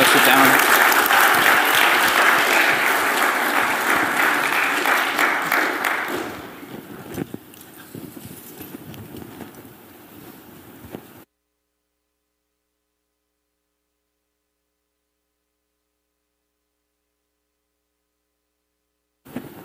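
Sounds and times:
audience applause: 0:00.0 - 0:07.0.

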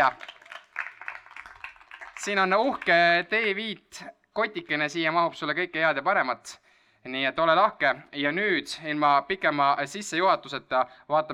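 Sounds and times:
speech: 0:00.0 - 0:00.3, 0:02.2 - 0:11.3
audience applause: 0:00.0 - 0:03.0.

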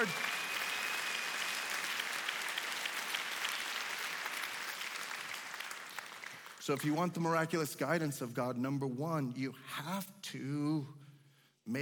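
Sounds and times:
audience applause: 0:00.0 - 0:06.8
speech: 0:06.6 - 0:11.0, 0:11.7 - 0:11.8.

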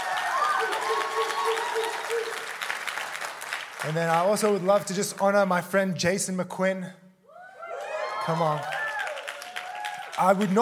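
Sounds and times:
audience applause: 0:00.0 - 0:04.7, 0:07.7 - 0:10.5
speech: 0:03.8 - 0:07.0, 0:08.2 - 0:08.8, 0:10.2 - 0:10.5.

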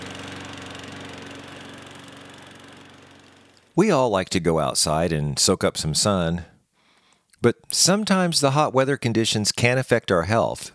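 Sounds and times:
lawn mower engine running on a hot afternoon: 0:00.0 - 0:03.9
speech: 0:03.8 - 0:06.5, 0:07.4 - 0:10.7.

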